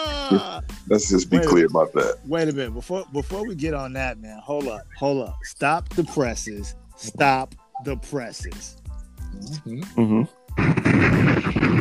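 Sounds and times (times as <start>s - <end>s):
speech: 0.0s - 8.7s, 9.4s - 10.3s
pipe bomb explosion: 10.6s - 11.7s.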